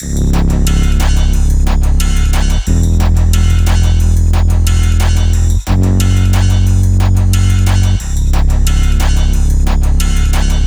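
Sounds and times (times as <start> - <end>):
SPD SX electronic percussion pad: 0.0 - 10.6.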